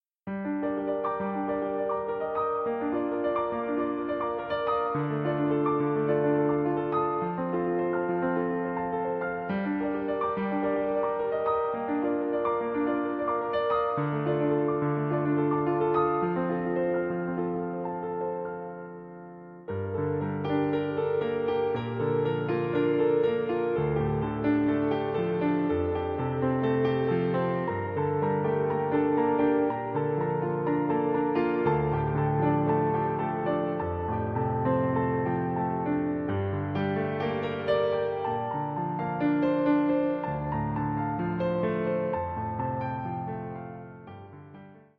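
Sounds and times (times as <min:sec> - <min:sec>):
piano cover: 0:00.2 - 0:44.9.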